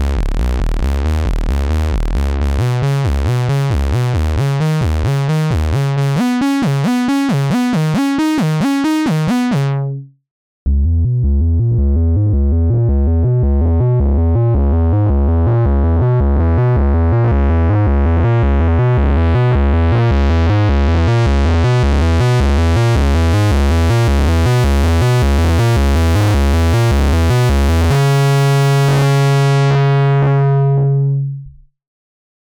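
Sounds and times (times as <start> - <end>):
Moog Sub25 synthesizer bass: 0.0 - 31.7.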